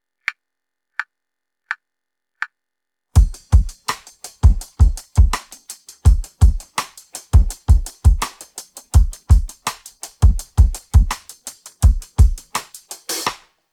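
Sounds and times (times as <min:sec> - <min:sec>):
drum pattern: 0:03.2 - 0:13.5.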